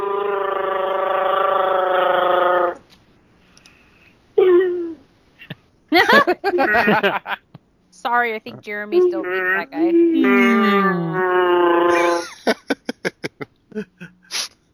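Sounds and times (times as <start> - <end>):
person imitating a Wookiee roar: 0.0 - 2.8, 9.2 - 12.3
laughter: 5.4 - 7.6, 11.9 - 14.5
speech: 6.2 - 7.4, 8.0 - 12.0.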